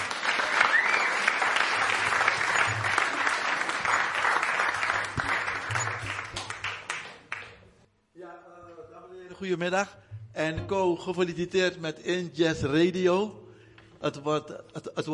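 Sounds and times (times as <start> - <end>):
audience applause: 0.0 - 7.6
speech: 9.4 - 13.4, 14.0 - 15.1.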